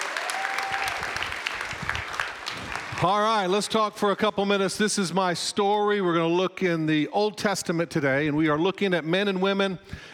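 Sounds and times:
audience applause honoring a school leader: 0.0s - 3.4s
speech: 3.0s - 10.1s.

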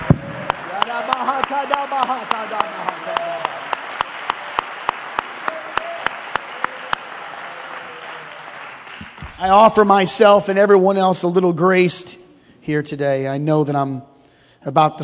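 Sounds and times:
audience rhythmic hand clapping: 0.0s - 9.9s
speech: 1.0s - 2.9s, 9.4s - 15.0s.

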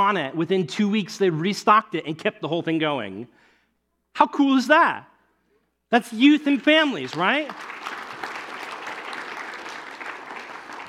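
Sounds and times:
speech: 0.0s - 3.4s, 4.2s - 5.1s, 5.9s - 7.8s
crowd applauding: 6.4s - 10.8s.

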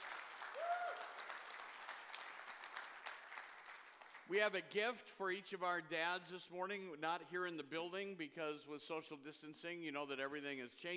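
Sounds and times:
audience applauding for fathers: 0.0s - 4.3s
speech: 4.3s - 10.9s.

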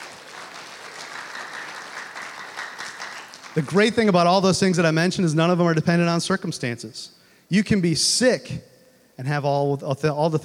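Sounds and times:
audience clapping: 0.0s - 4.3s
speech: 3.6s - 10.4s.

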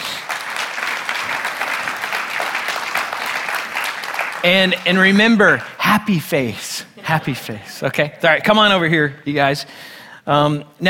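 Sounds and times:
audience applause welcoming team members to the stage: 0.0s - 5.8s
speech: 4.4s - 10.8s.

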